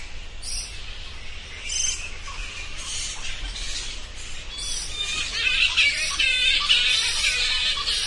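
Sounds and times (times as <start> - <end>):
bats squeaking: 1.6 - 8.0.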